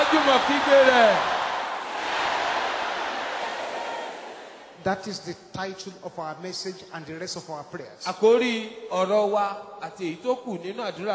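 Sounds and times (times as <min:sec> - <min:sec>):
crowd shouting: 0:00.0 - 0:04.8
speech: 0:00.3 - 0:01.4, 0:04.8 - 0:11.1.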